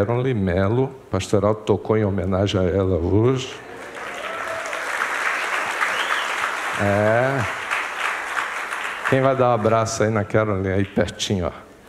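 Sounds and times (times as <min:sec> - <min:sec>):
speech: 0:00.0 - 0:03.7, 0:06.8 - 0:07.6, 0:09.1 - 0:11.6
audience applause for a birthday: 0:03.7 - 0:10.0.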